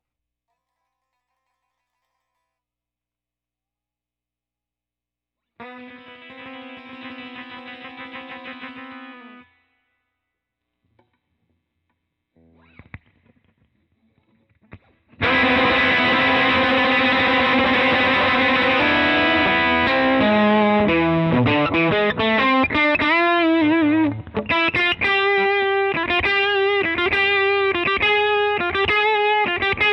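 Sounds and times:
guitar solo: 0:05.6 - 0:09.6, 0:14.7 - 0:29.9.

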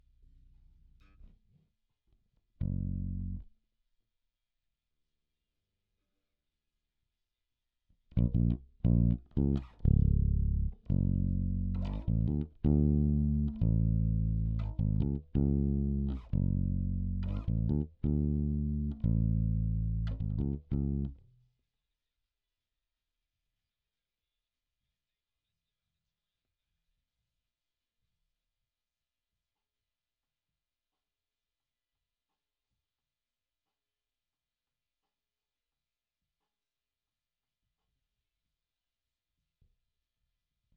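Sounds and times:
bass guitar recorded by direct input: 0:02.6 - 0:03.4, 0:08.1 - 0:21.2.

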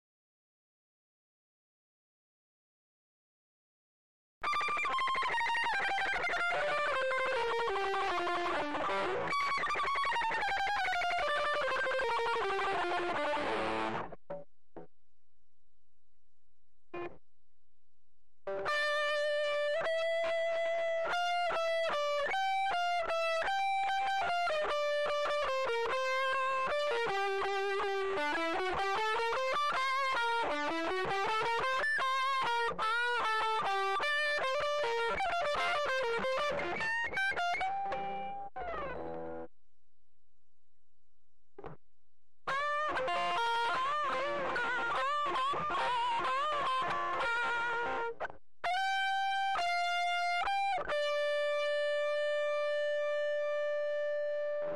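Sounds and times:
lead guitar: 0:04.4 - 0:14.4, 0:17.0 - 0:17.2, 0:18.5 - 0:39.5, 0:42.5 - 0:54.7.

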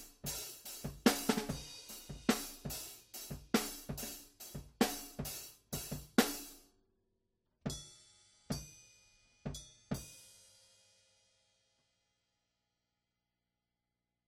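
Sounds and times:
drums: 0:00.0 - 0:06.6, 0:07.6 - 0:11.6.

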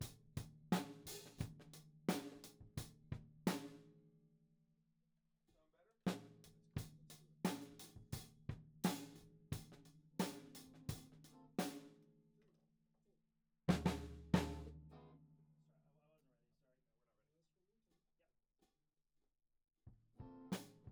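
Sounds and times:
tom drum: 0:00.0 - 0:03.8, 0:06.1 - 0:11.8, 0:13.7 - 0:14.8.

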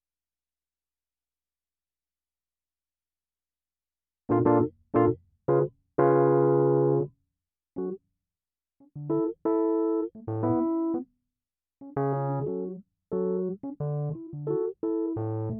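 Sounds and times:
keyboard music: 0:04.3 - 0:07.1, 0:09.0 - 0:11.0, 0:11.9 - 0:15.5.

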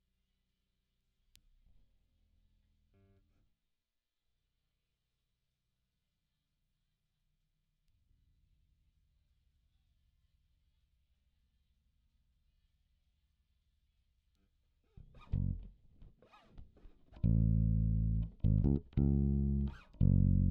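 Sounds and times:
bass guitar recorded by direct input: 0:15.0 - 0:20.5.

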